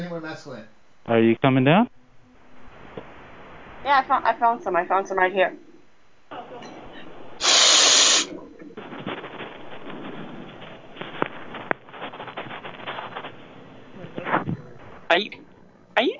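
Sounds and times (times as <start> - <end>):
speech: 0.0 - 2.0, 3.8 - 5.7, 15.1 - 16.1
sniffing into a phone: 7.4 - 8.3.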